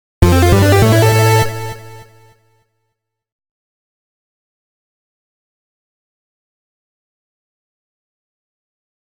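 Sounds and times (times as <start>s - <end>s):
power-up sound: 0.2s - 2.2s.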